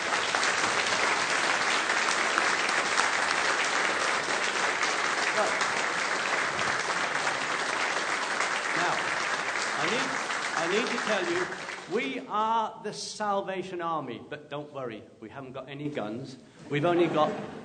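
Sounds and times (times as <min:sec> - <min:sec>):
audience applause welcoming a Salvation Army band in Felixstowe: 0:00.0 - 0:12.2
speech: 0:11.0 - 0:17.6.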